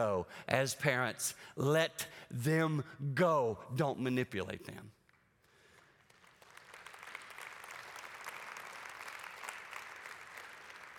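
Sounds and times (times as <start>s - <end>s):
speech: 0.0s - 5.0s
audience clapping: 5.1s - 10.9s.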